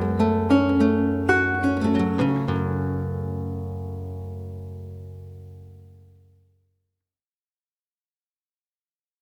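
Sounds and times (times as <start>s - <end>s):
lute piece in G minor: 0.0s - 6.2s.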